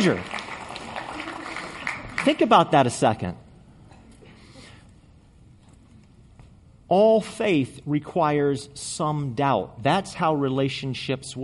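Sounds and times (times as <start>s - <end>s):
speech: 0.0s - 0.4s, 2.2s - 3.4s, 6.9s - 11.4s
audience applause: 0.0s - 2.5s.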